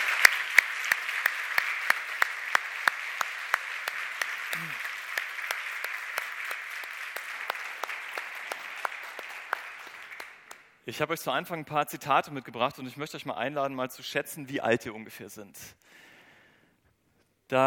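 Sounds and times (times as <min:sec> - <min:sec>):
audience applause: 0:00.0 - 0:10.7
speech: 0:10.9 - 0:15.8, 0:17.5 - 0:17.6.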